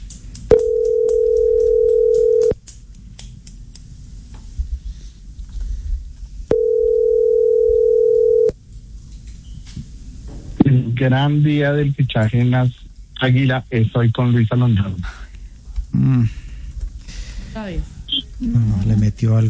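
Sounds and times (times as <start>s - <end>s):
telephone tone during call transfer: 0.5s - 2.6s, 6.5s - 8.6s
speech: 11.0s - 15.2s, 15.9s - 16.4s, 17.6s - 19.4s.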